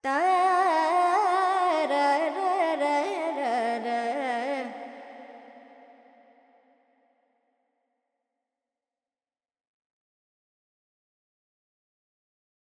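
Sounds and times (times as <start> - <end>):
Carnatic female vocal alaps in Dorian mode: 0.0 - 6.3.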